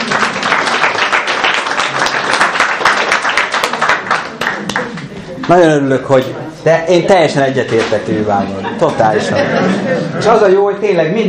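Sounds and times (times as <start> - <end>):
audience applause: 0.0 - 5.5
speech: 5.5 - 11.2
laughter: 8.1 - 10.6.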